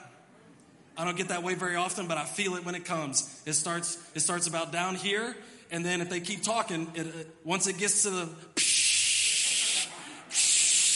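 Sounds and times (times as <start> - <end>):
speech: 1.0 - 8.7
voice imitating the hiss of a pressure cooker valve: 8.6 - 10.9.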